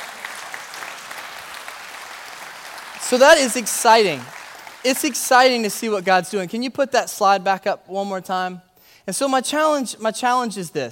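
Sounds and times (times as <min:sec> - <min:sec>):
audience applause: 0:00.0 - 0:05.6
speech: 0:03.1 - 0:10.9.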